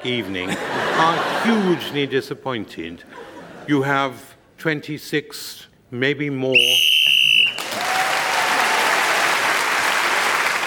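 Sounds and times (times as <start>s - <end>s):
speech: 0.0s - 6.9s
laughter: 0.1s - 2.1s
short shrill whistle blast: 6.5s - 7.7s
clapping: 7.4s - 10.6s.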